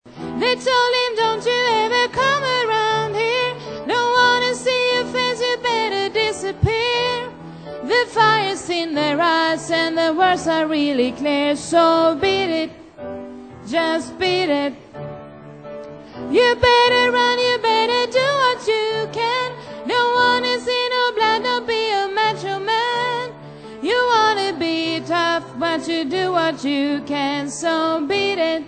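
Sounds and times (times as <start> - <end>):
soprano voice: 0.3 - 14.9, 16.3 - 28.6.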